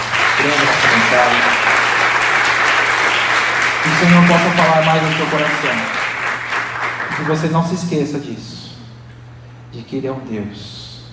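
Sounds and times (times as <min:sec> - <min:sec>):
audience applauding: 0:00.0 - 0:08.0
speech: 0:00.4 - 0:01.8, 0:03.8 - 0:06.0, 0:07.2 - 0:08.7, 0:09.7 - 0:10.8.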